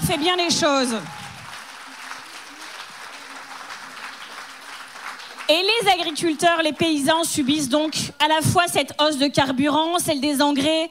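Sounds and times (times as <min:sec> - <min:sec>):
audience applause: 0:00.0 - 0:08.1
speech: 0:00.1 - 0:01.2, 0:05.5 - 0:10.8.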